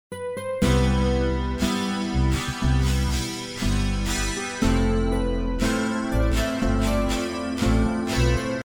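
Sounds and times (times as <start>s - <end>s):
guitar: 0.1s - 8.6s.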